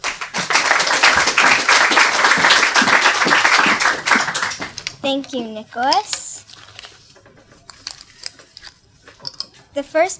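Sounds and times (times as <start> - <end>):
audience applause: 0.0 - 4.9
speech: 5.0 - 6.2, 9.8 - 10.1.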